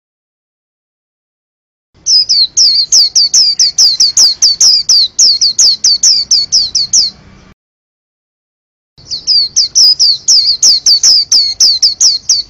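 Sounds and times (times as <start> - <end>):
white-eye singing: 2.0 - 7.3, 9.0 - 12.4.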